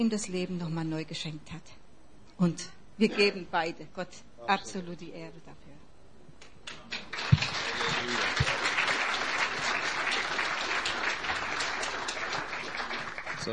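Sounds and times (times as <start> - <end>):
speech: 0.0 - 1.8, 2.4 - 5.8
audience applause: 6.9 - 13.5.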